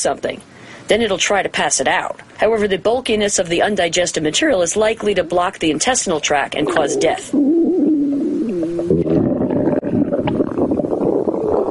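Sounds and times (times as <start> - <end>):
speech: 0.0 - 7.5
orca stomach rumbling: 6.6 - 11.7.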